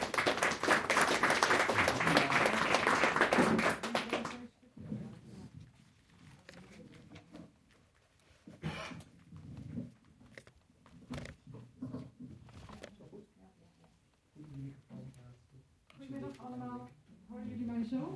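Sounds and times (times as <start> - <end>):
audience applause: 0.0 - 4.5.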